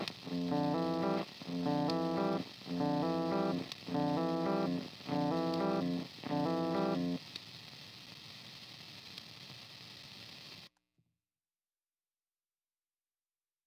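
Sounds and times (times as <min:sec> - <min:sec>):
lo-fi vinyl sound: 0:00.0 - 0:10.7.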